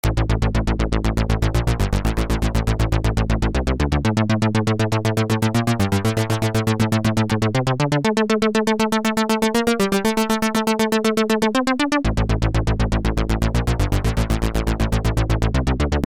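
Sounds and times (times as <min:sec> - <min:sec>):
synth: 0:00.0 - 0:16.0.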